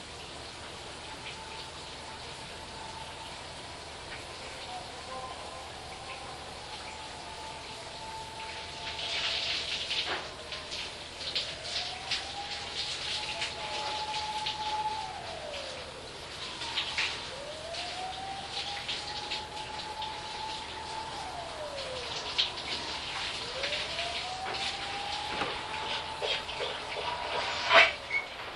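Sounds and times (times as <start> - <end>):
bath siren: 0.2 - 28.5.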